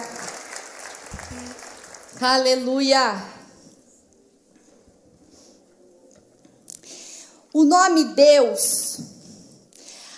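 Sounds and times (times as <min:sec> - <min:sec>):
audience applause: 0:00.0 - 0:02.5
speech: 0:02.2 - 0:03.4, 0:07.6 - 0:09.1.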